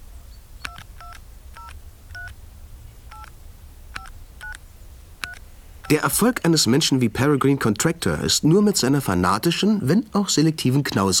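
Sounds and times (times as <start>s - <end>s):
low steady hum: 0.0s - 11.1s
touch-tone telephone beeps as a number is keyed in at the Rhodes: 0.7s - 2.3s, 3.1s - 3.3s
speech: 5.9s - 11.1s.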